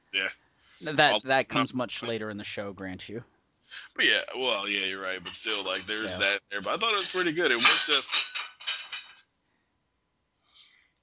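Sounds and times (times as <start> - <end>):
speech: 0.1 - 8.3
dishes clinking as a cat jumps on them: 5.1 - 9.3.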